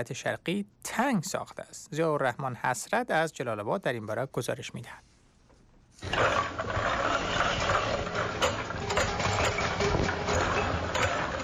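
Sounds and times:
speech: 0.0s - 5.1s
small cosmetics factory production machines running: 6.0s - 11.4s
faint rhythmic clattering: 6.1s - 11.4s.

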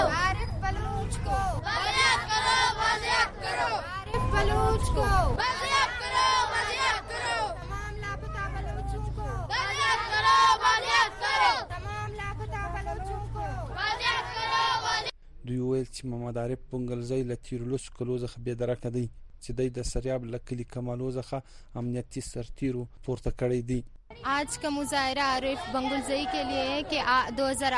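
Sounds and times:
protest crowd outside the Quetta Press Club: 0.0s - 15.1s, 24.1s - 27.7s
speech: 16.0s - 27.7s.

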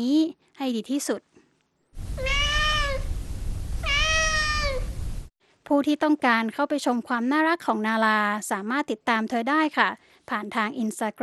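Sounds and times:
speech: 0.0s - 1.3s, 5.7s - 11.2s
cat meowing: 2.2s - 3.1s, 3.8s - 5.0s.

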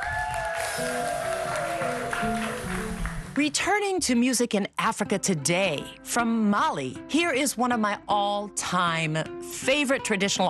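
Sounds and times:
audience applause: 0.0s - 3.4s
speech: 3.4s - 10.4s.

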